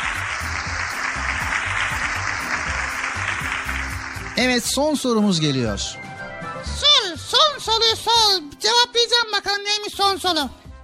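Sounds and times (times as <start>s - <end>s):
applause: 0.0s - 5.2s
speech: 4.4s - 6.0s, 7.6s - 10.6s.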